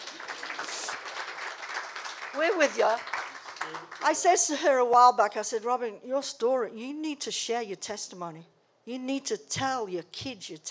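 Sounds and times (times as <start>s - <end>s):
audience clapping: 0.0s - 4.4s
speech: 2.4s - 10.6s.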